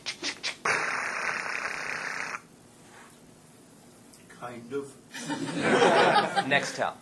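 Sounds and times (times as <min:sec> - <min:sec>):
voice imitating Nextel phone interference buzz: 0:00.1 - 0:02.4
speech: 0:04.4 - 0:07.0
laughter: 0:05.2 - 0:06.9.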